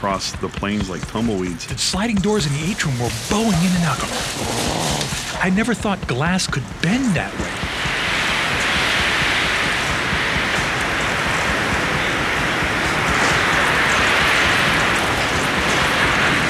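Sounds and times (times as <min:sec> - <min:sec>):
speech: 0:00.0 - 0:07.6
hurricane wind at about 140 mile an hour: 0:00.0 - 0:16.4.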